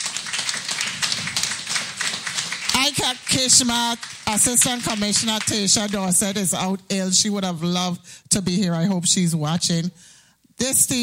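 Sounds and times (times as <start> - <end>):
audience applauding a team of staff at a briefing: 0.0 - 6.6
speech: 2.8 - 11.0.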